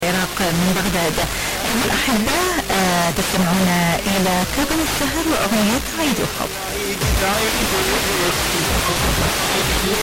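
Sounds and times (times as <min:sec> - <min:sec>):
radio broadcast on 89.1 MHz: 0:00.0 - 0:10.0.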